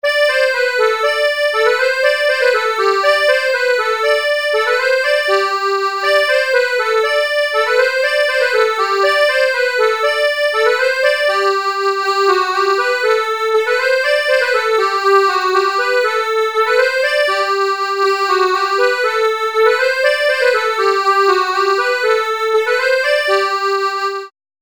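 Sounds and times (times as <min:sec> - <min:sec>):
baroque dance piece: 0:00.0 - 0:24.3.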